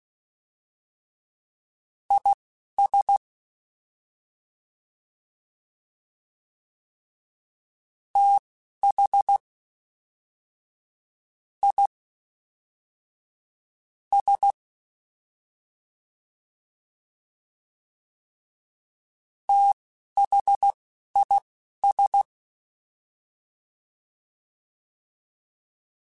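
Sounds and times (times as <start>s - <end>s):
fast CW Morse code groups: 2.1s - 3.2s, 8.2s - 9.4s, 11.6s - 11.9s, 14.2s - 14.5s, 19.5s - 22.2s.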